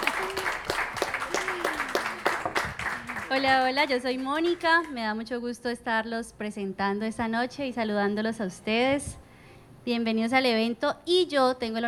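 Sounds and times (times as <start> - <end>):
audience applause: 0.0 - 4.9
speech: 3.3 - 9.2, 9.8 - 11.8.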